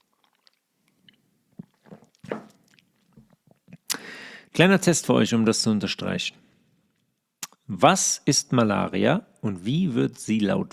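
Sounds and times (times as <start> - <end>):
person taking a sip of water: 0.0 - 4.1
speech: 4.5 - 6.4, 7.8 - 10.7.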